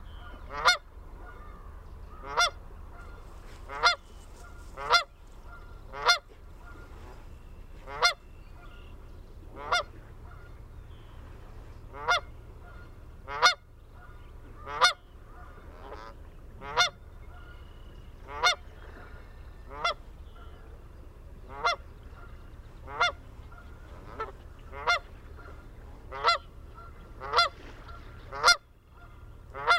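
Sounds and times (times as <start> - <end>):
Canada geese honking: 0.0 - 7.0, 7.8 - 11.1, 11.9 - 20.8, 21.4 - 29.7.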